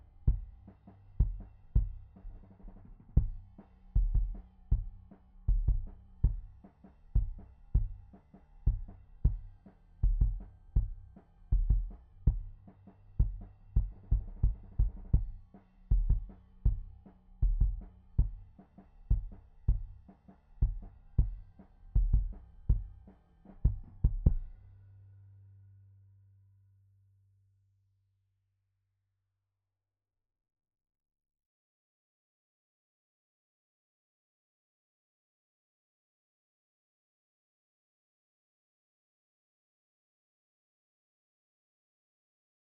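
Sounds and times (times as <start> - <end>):
kick drum: 0.3 - 2.4, 3.0 - 24.6.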